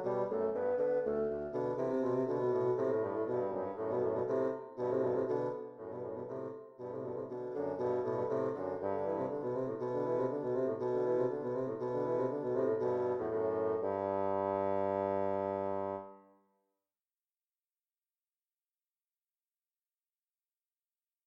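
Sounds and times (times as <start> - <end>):
two bassoons playing a duet: 0.0 - 16.2.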